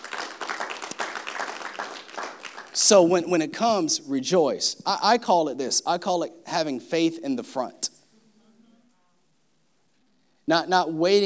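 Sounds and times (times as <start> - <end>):
audience clapping: 0.0 - 3.3
speech: 2.8 - 7.8, 10.5 - 11.2.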